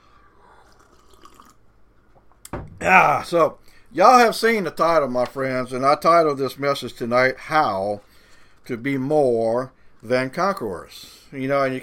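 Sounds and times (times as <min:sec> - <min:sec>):
quick sip of water: 0:00.5 - 0:01.7
speech: 0:02.8 - 0:11.8.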